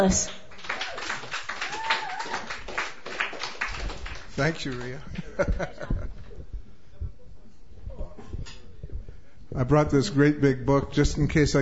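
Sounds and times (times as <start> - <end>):
speech: 0.0 - 0.4, 4.4 - 6.1, 9.5 - 11.5
audience clapping at a Sunday night open mic: 0.0 - 5.7
laughter: 5.0 - 6.4.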